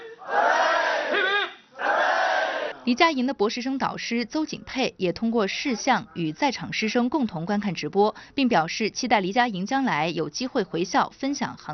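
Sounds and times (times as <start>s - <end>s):
students and staff cheering watching a Shenzhou spacecraft launch: 0.0s - 2.8s
speech: 2.9s - 11.7s.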